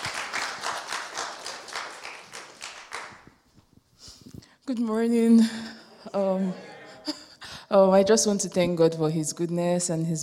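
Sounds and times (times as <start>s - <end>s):
crowd applauding: 0.0s - 3.4s
speech: 4.7s - 10.2s
laughter: 5.8s - 7.4s.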